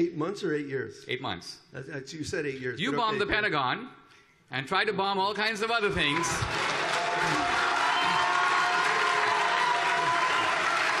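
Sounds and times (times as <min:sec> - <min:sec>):
speech: 0:00.0 - 0:07.6
audience cheering and applauding: 0:05.9 - 0:10.9.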